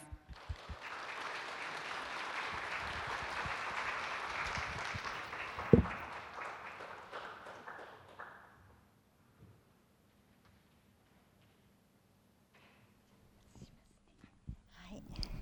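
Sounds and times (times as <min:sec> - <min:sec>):
crowd clapping welcoming a speaker: 0:00.0 - 0:08.9.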